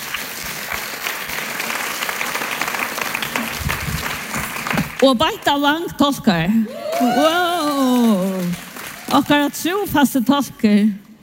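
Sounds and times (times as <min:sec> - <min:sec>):
audience applause welcoming a guest at a gathering: 0:00.0 - 0:05.0, 0:06.7 - 0:09.7
speech: 0:05.0 - 0:11.0.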